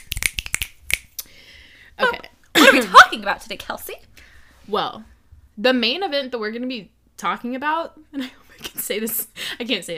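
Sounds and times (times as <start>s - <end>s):
finger snaps: 0.0s - 1.3s
speech: 3.2s - 9.9s.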